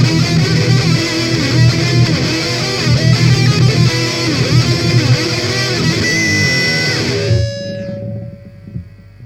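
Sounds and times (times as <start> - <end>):
musical riff: 0.0 - 8.8.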